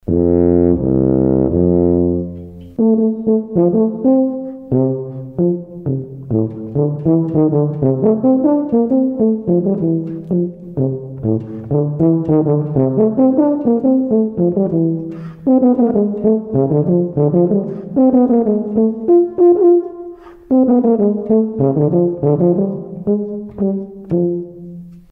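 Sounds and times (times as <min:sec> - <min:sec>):
tuba: 0:00.0 - 0:25.1.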